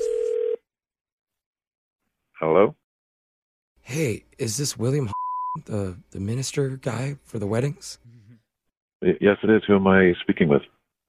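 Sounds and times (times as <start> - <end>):
telephone dial tone: 0.0 - 0.6
speech: 2.4 - 2.8, 3.9 - 8.2, 9.0 - 10.8.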